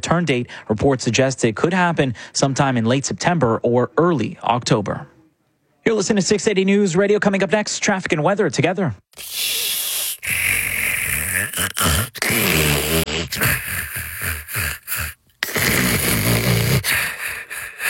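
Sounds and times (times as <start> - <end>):
speech: 0.0 - 5.1, 5.8 - 9.6, 12.4 - 15.2
person snoring: 9.2 - 17.8.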